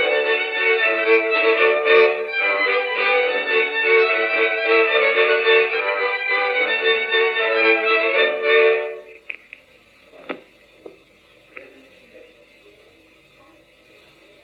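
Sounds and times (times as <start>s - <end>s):
instrumental jingle: 0.0s - 9.1s.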